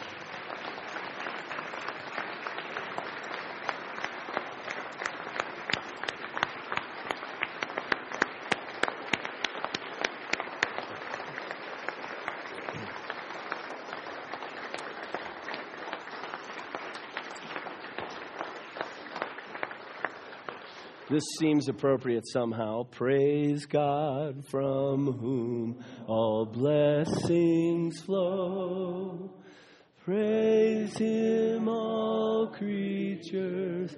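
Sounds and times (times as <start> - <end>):
audience applause: 0.0 - 21.8
speech: 21.1 - 29.2, 30.1 - 33.9.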